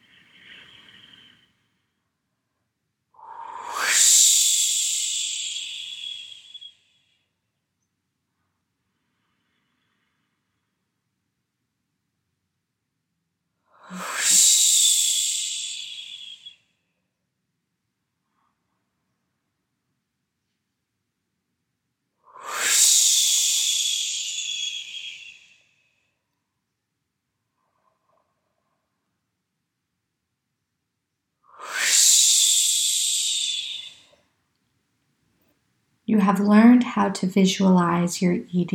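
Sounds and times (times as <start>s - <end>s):
breathy whooshing exhales: 3.3s - 6.6s, 13.9s - 16.4s, 22.4s - 25.3s, 31.6s - 34.1s
speech: 36.1s - 38.7s.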